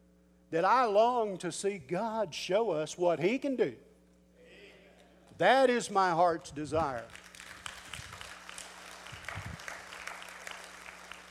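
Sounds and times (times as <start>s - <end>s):
speech: 0.5s - 3.9s, 5.4s - 7.2s
crowd applauding: 7.0s - 11.2s.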